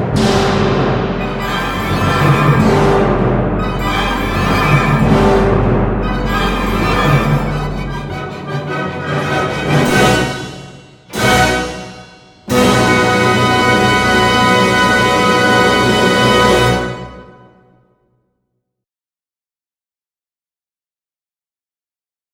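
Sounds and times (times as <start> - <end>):
fanfare: 0.2 - 16.9.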